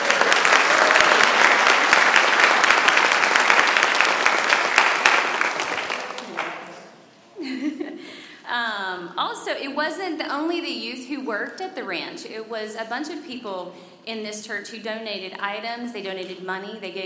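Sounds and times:
audience applause: 0:00.0 - 0:06.9
speech: 0:09.6 - 0:17.0.

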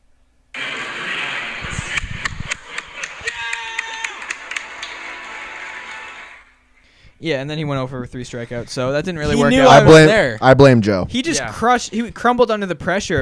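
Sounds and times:
person cheering at lineup announcement in ballpark: 0:03.0 - 0:04.6
speech: 0:07.2 - 0:13.1.

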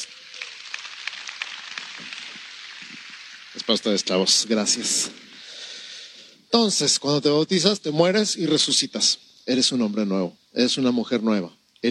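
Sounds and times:
crowd applause: 0:00.0 - 0:04.0
speech: 0:03.7 - 0:05.2, 0:06.6 - 0:11.8.

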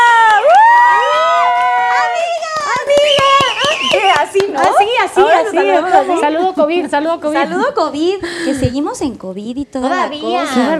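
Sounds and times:
crowd cheering and whooping: 0:00.0 - 0:04.5
scattered claps: 0:02.4 - 0:05.0
speech: 0:05.0 - 0:10.7.

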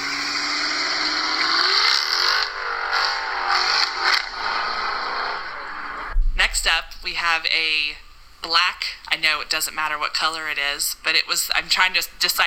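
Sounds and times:
Chrysler 300 sedan engine revving: 0:00.0 - 0:07.4
speech: 0:06.8 - 0:12.4.

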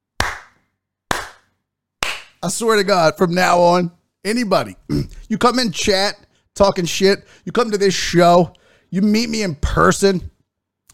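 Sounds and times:
sharp hand claps: 0:00.2 - 0:02.4
speech: 0:02.4 - 0:10.3.

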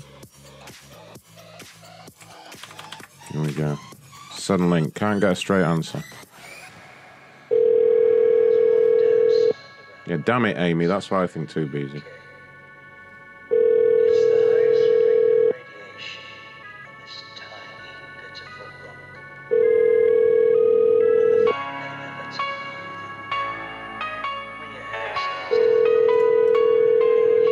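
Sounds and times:
speech: 0:03.3 - 0:06.2, 0:10.1 - 0:12.1
telephone ringback of an unanswered call to a cable provider: 0:07.5 - 0:09.6, 0:13.5 - 0:15.6, 0:19.5 - 0:21.6, 0:25.4 - 0:27.4.

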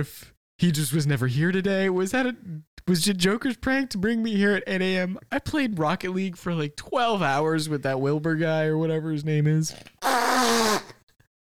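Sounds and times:
speech: 0:00.0 - 0:11.0
person blowing nose: 0:10.0 - 0:11.1.

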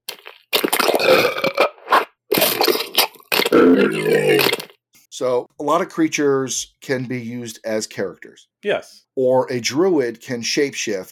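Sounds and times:
slaadi bite action sound effect: 0:00.1 - 0:04.7
speech: 0:03.6 - 0:04.6, 0:05.2 - 0:11.1.

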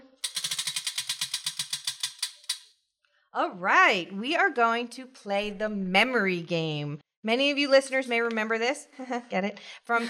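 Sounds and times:
game wheel spinning and clicking: 0:00.1 - 0:02.8
speech: 0:03.4 - 0:10.0.

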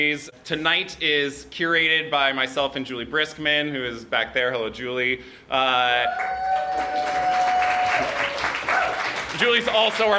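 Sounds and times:
speech: 0:00.0 - 0:07.2, 0:09.4 - 0:10.1
person whooping or whistling: 0:05.8 - 0:09.1
audience applause: 0:06.1 - 0:10.1.

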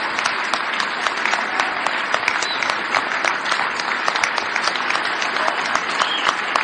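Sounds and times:
audience applause: 0:00.0 - 0:06.6.

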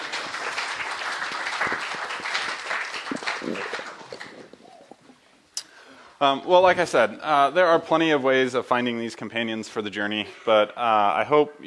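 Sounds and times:
audience clapping: 0:00.0 - 0:05.2
speech: 0:06.2 - 0:11.6.

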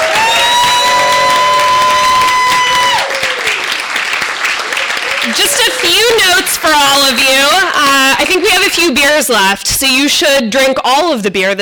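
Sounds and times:
audience applause: 0:00.0 - 0:09.3
crowd cheering: 0:00.0 - 0:09.6
speech: 0:06.6 - 0:11.6.

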